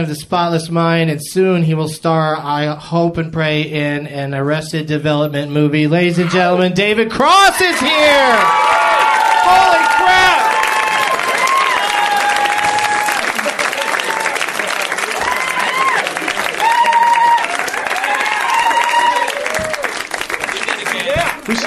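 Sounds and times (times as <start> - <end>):
speech: 0.0 - 8.8, 9.5 - 10.2
audience clapping: 7.8 - 21.6.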